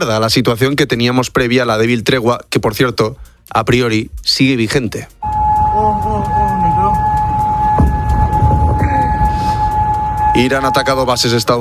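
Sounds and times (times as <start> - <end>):
speech: 0.0 - 6.1, 10.4 - 11.5
air raid sirens: 5.2 - 11.5.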